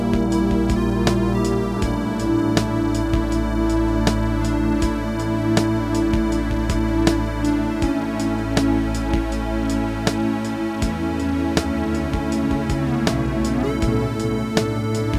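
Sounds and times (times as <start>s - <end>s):
drum track: 0.0s - 15.1s.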